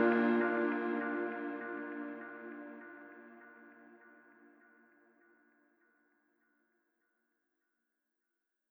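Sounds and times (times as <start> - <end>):
positive upbeat music: 0.0 - 2.9.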